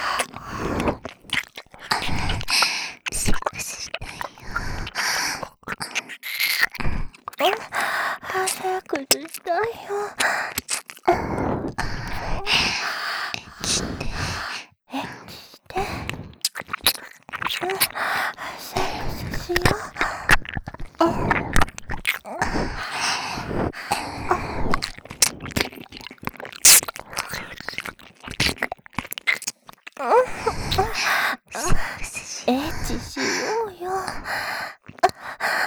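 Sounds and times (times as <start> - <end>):
ear licking sounds: 0.0 - 14.6, 15.3 - 35.6
person moaning: 31.6 - 34.2.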